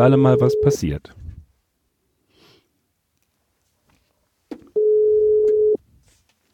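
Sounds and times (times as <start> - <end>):
speech: 0.0 - 1.2
telephone ringback tone on outgoing call: 0.3 - 0.8, 4.8 - 5.8.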